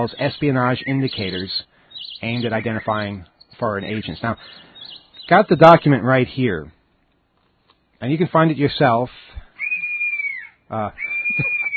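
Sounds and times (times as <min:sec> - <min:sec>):
speech: 0:00.0 - 0:06.8, 0:08.0 - 0:09.4, 0:10.7 - 0:11.6
bird of prey screeching: 0:00.9 - 0:03.0, 0:09.5 - 0:11.7.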